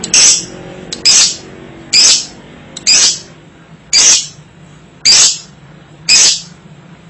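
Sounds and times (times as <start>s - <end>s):
lovebird shrill screeches: 0.1s - 3.3s, 3.9s - 4.4s, 5.1s - 5.5s, 6.1s - 6.5s.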